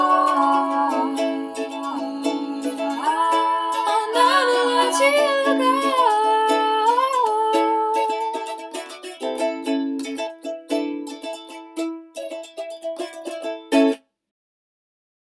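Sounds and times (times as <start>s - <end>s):
person singing a cover: 0.0s - 11.7s
ukulele: 0.0s - 14.0s.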